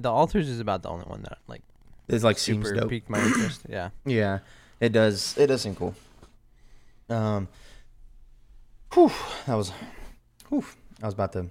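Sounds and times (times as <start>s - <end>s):
speech: 0.0s - 6.1s, 7.1s - 7.7s, 8.9s - 11.4s
person sneezing: 3.2s - 3.6s.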